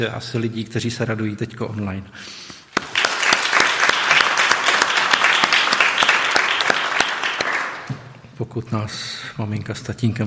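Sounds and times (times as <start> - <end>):
speech: 0.0 - 2.5, 8.4 - 10.2
audience applause: 2.8 - 8.1.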